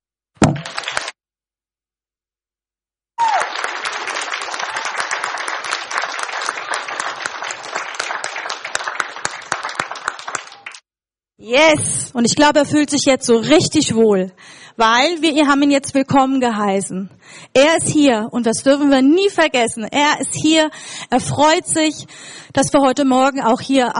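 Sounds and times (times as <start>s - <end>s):
audience clapping: 0.4s - 1.2s, 3.2s - 10.8s
speech: 11.5s - 23.9s.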